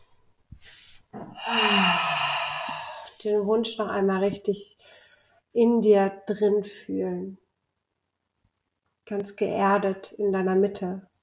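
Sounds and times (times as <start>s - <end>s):
deep breath in and out with a low voiced sigh: 0.6s - 3.2s
speech: 3.2s - 7.4s, 9.1s - 11.1s.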